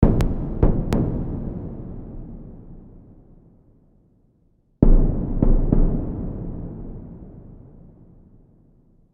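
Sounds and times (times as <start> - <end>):
deep drums: 0.0 - 2.5, 4.8 - 6.7.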